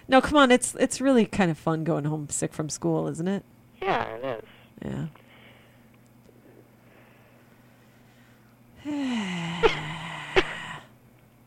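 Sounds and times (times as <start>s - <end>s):
speech: 0.1s - 5.2s, 8.8s - 9.8s
person coughing: 9.6s - 10.6s.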